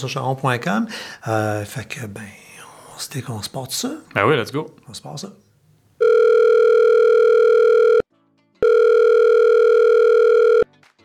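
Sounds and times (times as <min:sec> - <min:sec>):
speech: 0:00.0 - 0:05.4
telephone line ringing with long buzzy tones: 0:06.0 - 0:08.0, 0:08.6 - 0:10.6.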